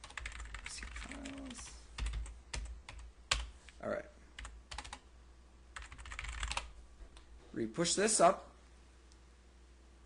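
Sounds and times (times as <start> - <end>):
typing on a computer keyboard while committing code: 0.0 - 3.5, 4.4 - 5.0, 5.8 - 6.7
speech: 3.8 - 4.0, 7.6 - 8.5.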